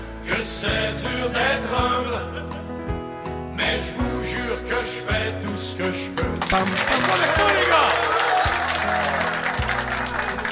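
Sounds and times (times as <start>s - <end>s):
speech: 0.3s - 2.7s, 3.6s - 9.4s
crowd applause dubbed in after recording: 6.2s - 10.4s.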